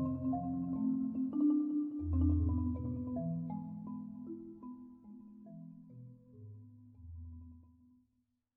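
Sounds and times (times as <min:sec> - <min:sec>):
xylophone piece: 0:00.0 - 0:06.0.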